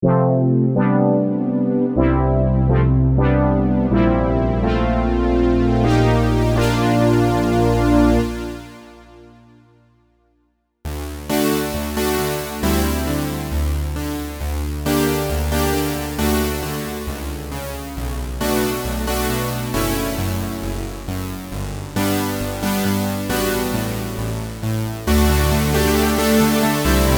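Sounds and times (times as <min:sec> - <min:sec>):
fat analog synth: 0:00.0 - 0:09.7, 0:10.9 - 0:27.1.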